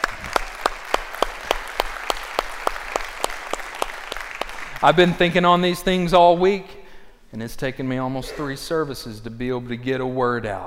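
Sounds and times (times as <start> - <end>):
audience applauding: 0.0 - 6.1
speech: 4.8 - 10.6.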